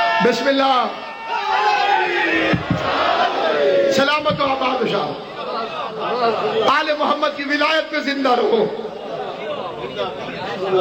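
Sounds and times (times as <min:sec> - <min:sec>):
speech: 0:00.2 - 0:01.1, 0:02.3 - 0:08.9, 0:09.9 - 0:10.7
crowd chanting religious slogans at a gathering: 0:01.2 - 0:06.6.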